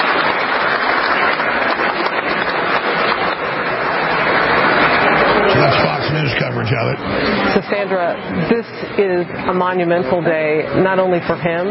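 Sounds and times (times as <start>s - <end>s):
applause: 0.0s - 6.0s
speech: 6.6s - 11.7s.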